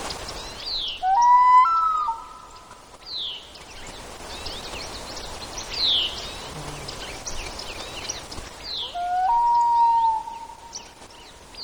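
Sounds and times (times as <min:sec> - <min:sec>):
common loon with punctuated calls: 0:01.0 - 0:02.6, 0:08.8 - 0:10.8.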